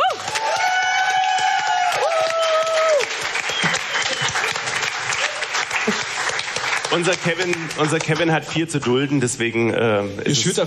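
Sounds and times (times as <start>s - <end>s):
audience applause: 0.0s - 8.3s
speech: 6.9s - 10.6s.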